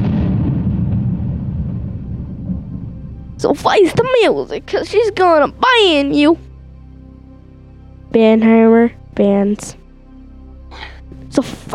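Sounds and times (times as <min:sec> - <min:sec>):
TNT exploding and blowing up a house in Minecraft: 0:00.0 - 0:04.2
speech: 0:03.4 - 0:06.5, 0:08.1 - 0:09.8, 0:11.4 - 0:11.7.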